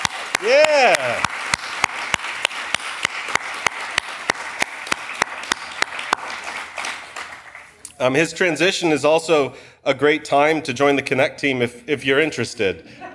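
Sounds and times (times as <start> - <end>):
audience applause: 0.0 - 7.8
speech: 0.4 - 1.3, 8.0 - 13.1.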